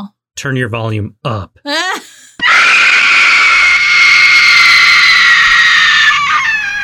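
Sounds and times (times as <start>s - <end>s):
speech: 0.0s - 2.0s
piercing horror movie scream: 2.4s - 6.8s.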